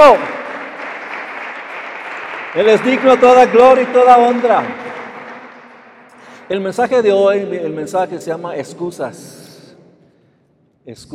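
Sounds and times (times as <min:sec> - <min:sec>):
speech: 0:00.0 - 0:00.4, 0:02.6 - 0:04.8, 0:06.5 - 0:09.5, 0:10.9 - 0:11.1
applause: 0:00.0 - 0:07.1.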